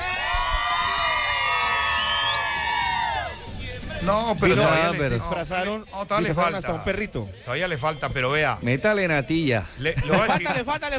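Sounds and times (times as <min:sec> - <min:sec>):
crowd cheering loudly: 0:00.0 - 0:05.4
laughter: 0:00.0 - 0:05.4, 0:09.0 - 0:10.9
speech: 0:04.0 - 0:10.9.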